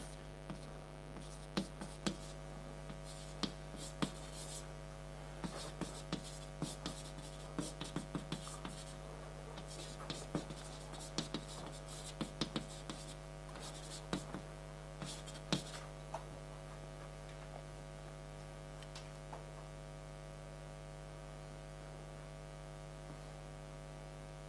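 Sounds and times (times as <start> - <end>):
steady low mains hum: 0.0 - 24.4
scratchy taps writing on a board during a lecture: 0.5 - 4.6, 5.4 - 9.0, 9.6 - 14.4, 15.0 - 15.8.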